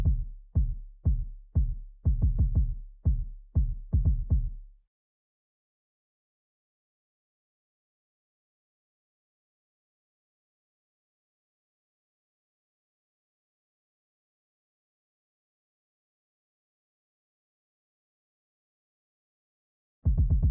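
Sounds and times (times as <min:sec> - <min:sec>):
kick drum: 0:00.0 - 0:04.7, 0:20.1 - 0:20.4.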